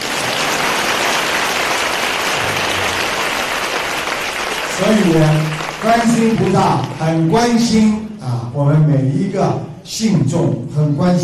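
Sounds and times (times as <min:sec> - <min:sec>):
audience applause: 0:00.0 - 0:07.6
speech: 0:04.8 - 0:08.0, 0:08.6 - 0:11.2.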